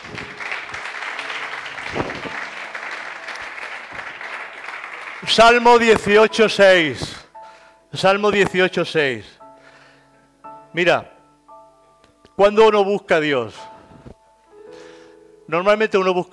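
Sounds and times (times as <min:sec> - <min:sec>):
audience applauding: 0:00.0 - 0:06.4
speech: 0:05.3 - 0:07.1, 0:07.9 - 0:09.4, 0:10.8 - 0:11.1, 0:12.4 - 0:13.7, 0:15.5 - 0:16.3.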